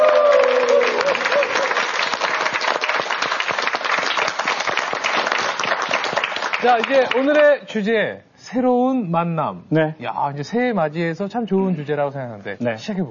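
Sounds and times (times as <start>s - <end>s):
audience applause: 0.0s - 7.4s
speech: 6.6s - 13.0s.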